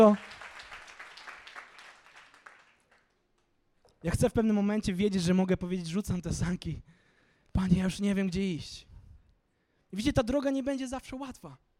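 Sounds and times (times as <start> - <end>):
speech: 0.0 - 0.2, 4.0 - 7.0, 7.6 - 8.9, 9.9 - 11.7
audience applause: 0.0 - 3.2.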